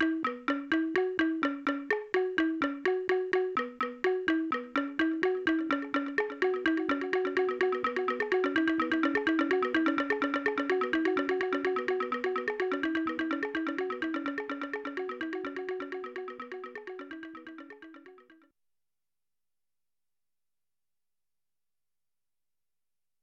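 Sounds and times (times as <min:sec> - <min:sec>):
African xylophone music: 0:00.0 - 0:18.4.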